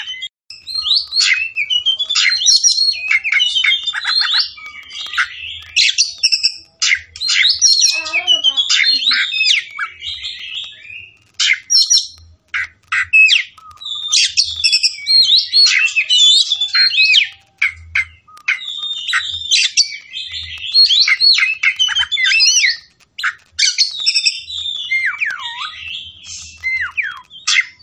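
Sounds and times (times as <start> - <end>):
Oriental magpie-robin singing: 0.0 - 27.8.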